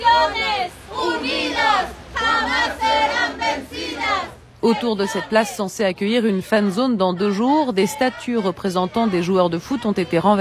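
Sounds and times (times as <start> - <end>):
protest crowd chanting slogans: 0.0 - 10.4
speech: 4.6 - 10.4.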